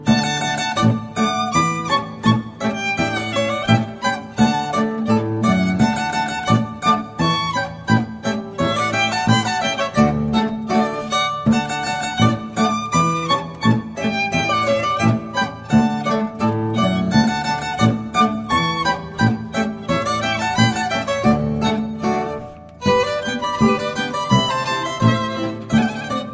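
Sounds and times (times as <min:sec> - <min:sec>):
zither playing a Boarischer dance: 0:00.0 - 0:26.3.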